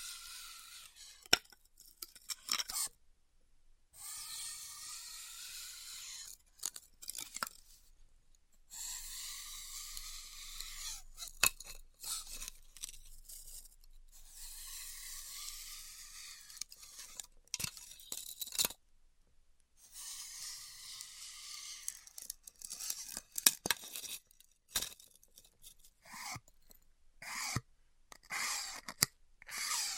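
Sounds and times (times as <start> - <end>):
hot wire cutting styrofoam: 0.0 - 3.0, 4.0 - 7.8, 8.7 - 18.8, 19.8 - 26.5, 27.2 - 29.9.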